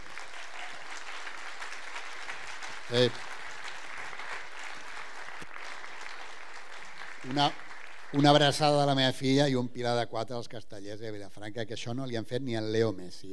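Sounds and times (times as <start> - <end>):
audience applause: 0.0 - 8.8
speech: 2.9 - 3.3, 7.2 - 13.3.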